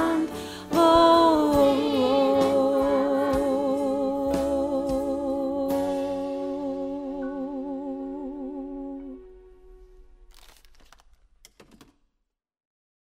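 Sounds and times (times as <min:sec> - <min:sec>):
middle voice part singing for rehearsal: 0:00.0 - 0:09.3.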